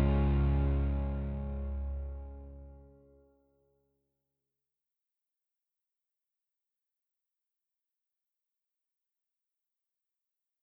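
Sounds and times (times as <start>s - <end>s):
backing track music: 0.0s - 2.8s.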